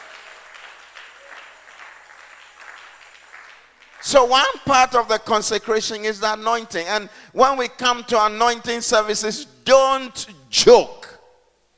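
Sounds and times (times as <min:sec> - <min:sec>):
audience clapping: 0:00.0 - 0:05.0
speech: 0:04.0 - 0:11.0.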